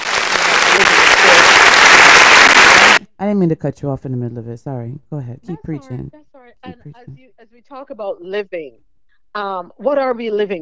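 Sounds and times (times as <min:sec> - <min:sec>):
applause: 0:00.0 - 0:03.0
speech: 0:03.2 - 0:10.6.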